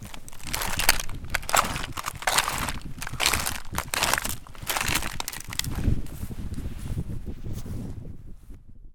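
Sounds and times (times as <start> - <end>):
footsteps on a kitchen midden: 0.0 - 7.0.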